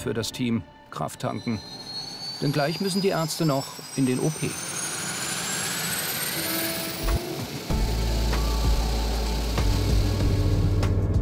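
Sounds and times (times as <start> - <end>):
speech: 0.0 - 4.7
aircraft engine noise during flight: 0.0 - 11.1.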